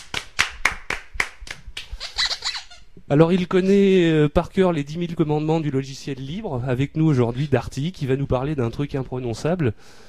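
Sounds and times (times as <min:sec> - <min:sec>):
studio audience clapping on a French talk show: 0:00.0 - 0:01.9
speech: 0:03.1 - 0:10.0.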